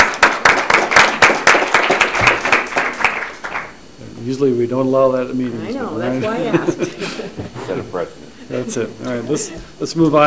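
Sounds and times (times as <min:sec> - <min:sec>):
crowd applauding: 0:00.0 - 0:03.8
speech: 0:04.2 - 0:10.2
laughter: 0:05.7 - 0:09.7.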